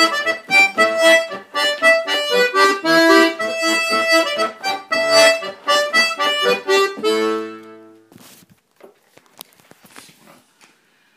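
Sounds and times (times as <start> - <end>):
polka music: 0.0 - 8.1.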